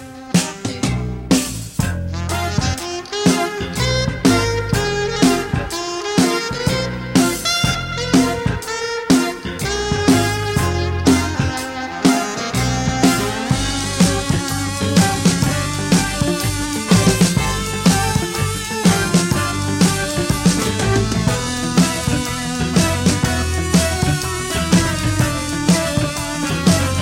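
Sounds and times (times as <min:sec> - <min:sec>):
saxophone: 0:00.0 - 0:01.0, 0:02.2 - 0:27.0.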